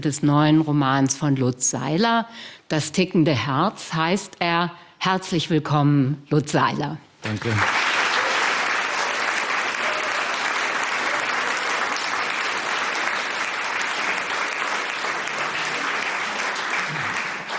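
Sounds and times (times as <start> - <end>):
speech: 0.0 - 7.8
audience applause at a literary reading at the Literarisches Kolloquium: 7.4 - 17.5.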